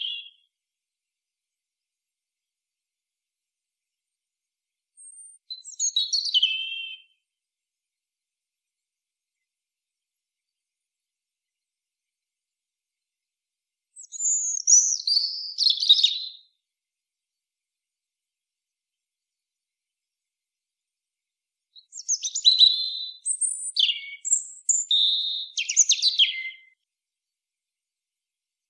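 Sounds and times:
European robin song: 0:05.0 - 0:07.1, 0:14.0 - 0:16.4, 0:21.8 - 0:26.8.

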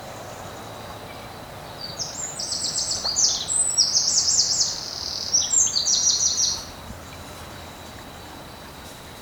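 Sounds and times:
background noise: 0:00.0 - 0:09.2
Eurasian wren song with long high trilling phrase: 0:00.2 - 0:06.7.

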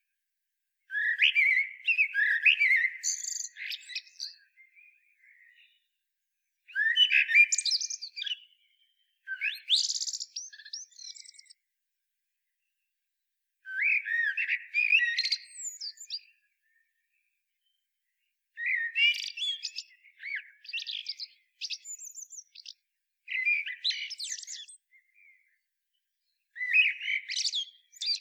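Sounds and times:
common blackbird singing: 0:00.9 - 0:05.9, 0:06.7 - 0:11.6, 0:13.6 - 0:16.9, 0:18.6 - 0:25.6, 0:26.2 - 0:28.1.

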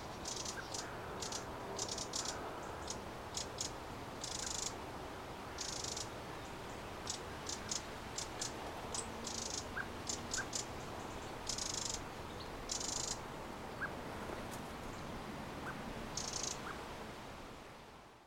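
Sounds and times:
low noise: 0:00.0 - 0:18.2
Eurasian wren rattling calls: 0:00.2 - 0:04.7, 0:05.6 - 0:06.1, 0:07.0 - 0:10.7, 0:11.4 - 0:12.0, 0:12.7 - 0:13.2, 0:16.2 - 0:16.7.

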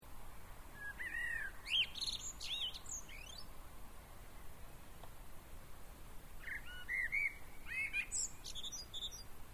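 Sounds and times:
common blackbird singing: 0:00.8 - 0:03.5, 0:06.4 - 0:09.3.

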